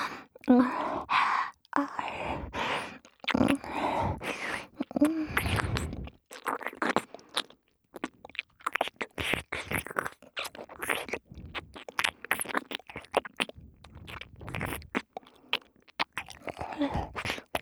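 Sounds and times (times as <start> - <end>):
ear licking ASMR loop: 0.0 - 17.6.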